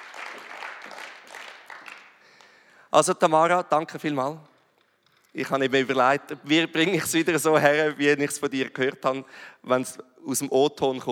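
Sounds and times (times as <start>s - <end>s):
audience applause: 0.0s - 2.6s
speech: 2.9s - 4.5s, 5.3s - 11.0s.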